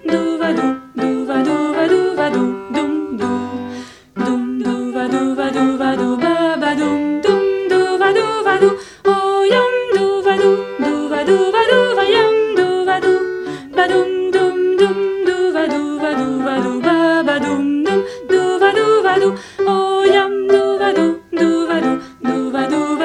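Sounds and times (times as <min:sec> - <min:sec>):
alto polonaise music: 0:00.0 - 0:23.0.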